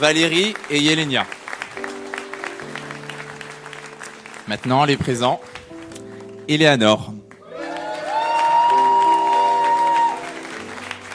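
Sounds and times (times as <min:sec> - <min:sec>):
speech: 0:00.0 - 0:01.4, 0:04.5 - 0:05.5, 0:06.5 - 0:07.2
audience applauding: 0:00.0 - 0:11.1.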